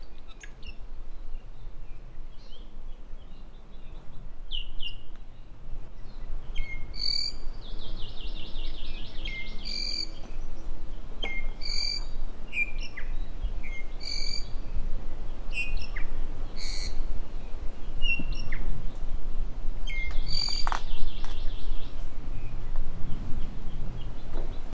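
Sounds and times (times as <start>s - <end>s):
low rumble of wind: 0.0s - 24.7s
iiwi squeaky calls and whistles: 6.6s - 7.4s, 9.2s - 10.2s, 11.2s - 13.1s, 13.7s - 14.5s, 16.6s - 17.0s, 19.9s - 21.0s.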